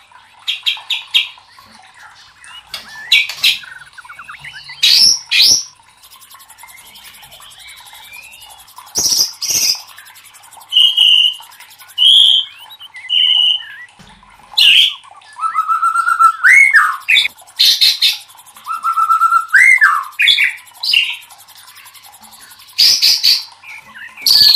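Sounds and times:
White-rumped shama singing: 0.5s - 24.5s.

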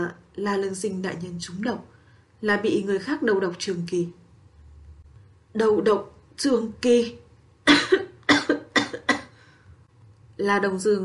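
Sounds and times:
speech: 0.0s - 4.2s, 5.5s - 7.9s, 10.4s - 11.0s
violent dry coughing fit: 7.7s - 9.4s.

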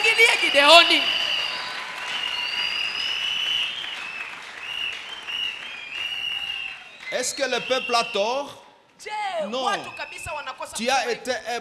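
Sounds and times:
church congregation applauding during a sermon: 0.0s - 8.1s
speech: 0.5s - 1.2s, 7.2s - 11.6s.

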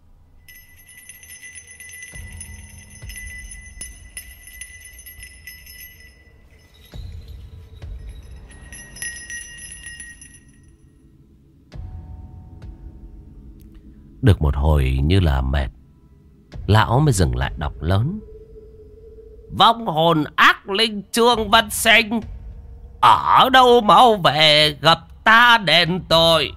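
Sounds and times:
low rumbling background: 0.0s - 20.1s
hand bell being shaken, jingling: 0.4s - 11.0s
speech: 14.2s - 15.8s, 16.7s - 18.3s, 19.5s - 22.4s, 23.0s - 26.5s.

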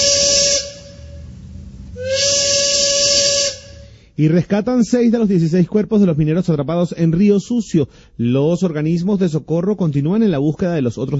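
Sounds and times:
train whistle blasts: 0.0s - 4.2s
speech: 4.2s - 11.1s.

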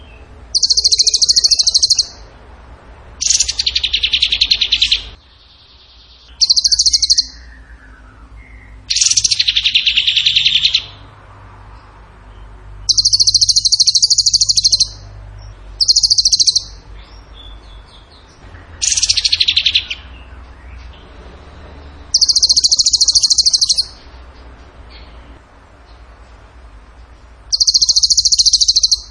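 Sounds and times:
bird singing rapid high trills: 0.0s - 2.3s, 3.2s - 5.2s, 5.8s - 11.0s, 12.9s - 15.0s, 15.8s - 17.9s, 18.8s - 20.3s, 22.1s - 24.1s, 27.5s - 29.1s.

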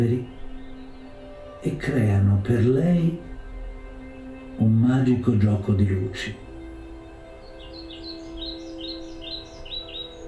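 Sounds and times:
speech: 0.0s - 0.4s, 1.6s - 3.3s, 4.6s - 6.4s
birds chirping: 0.0s - 10.2s.

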